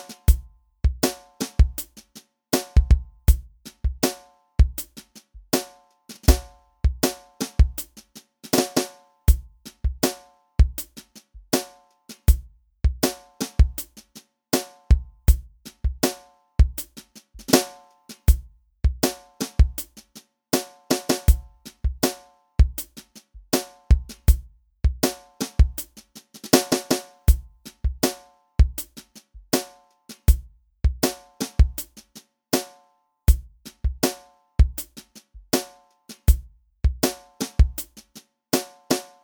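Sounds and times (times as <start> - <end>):
drums: 0.0 - 39.2.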